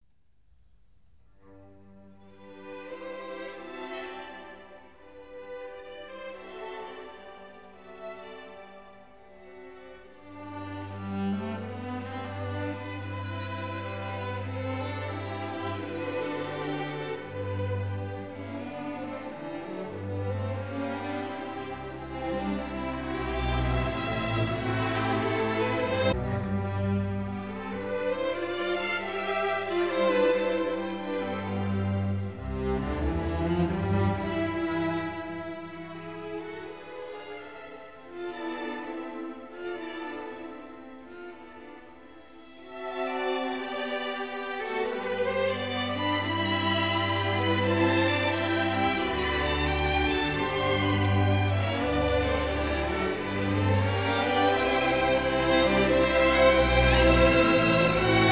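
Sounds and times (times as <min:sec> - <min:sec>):
serenade for strings in E minor: 0:01.4 - 0:58.2.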